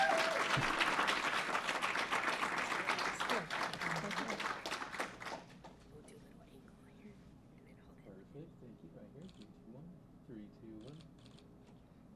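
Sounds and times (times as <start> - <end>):
crowd applauding: 0.0 - 5.6.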